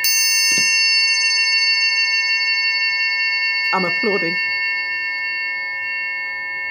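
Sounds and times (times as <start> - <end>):
triangle ringing with hand vibrato: 0.0 - 6.6
speech: 3.7 - 4.5.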